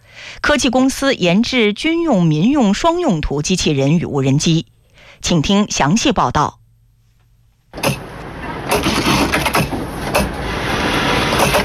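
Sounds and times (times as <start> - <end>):
speech: 0.5 - 6.6
sewing machines whirring in a clothing factory: 8.7 - 11.6.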